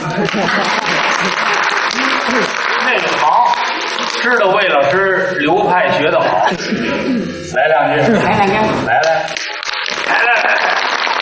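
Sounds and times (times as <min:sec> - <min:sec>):
applause: 0:00.0 - 0:04.4, 0:09.3 - 0:11.2
laughter: 0:00.0 - 0:04.6, 0:05.5 - 0:09.1, 0:09.8 - 0:11.2
speech: 0:00.2 - 0:01.6, 0:02.3 - 0:03.5, 0:04.2 - 0:09.4.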